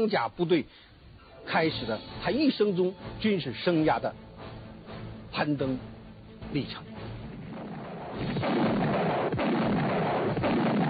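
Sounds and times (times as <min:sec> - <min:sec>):
speech: 0:00.0 - 0:04.3, 0:05.3 - 0:05.9, 0:06.5 - 0:07.0
artillery fire rumbling: 0:07.4 - 0:10.8.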